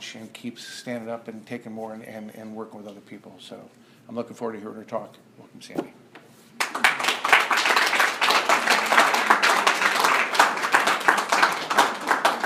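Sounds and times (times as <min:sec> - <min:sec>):
speech: 0:00.1 - 0:06.0
people clapping: 0:06.6 - 0:12.4.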